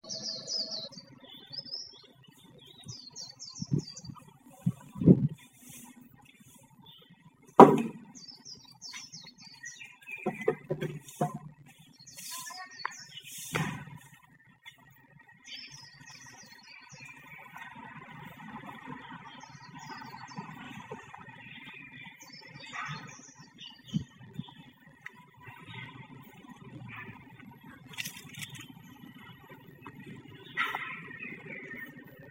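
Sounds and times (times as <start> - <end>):
birds chirping: 0.0 - 32.3
sharp clicks and knocks: 10.2 - 11.5.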